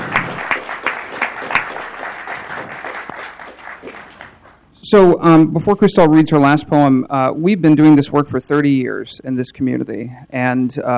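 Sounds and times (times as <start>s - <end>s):
audience applause: 0.0s - 4.6s
speech: 4.9s - 10.9s.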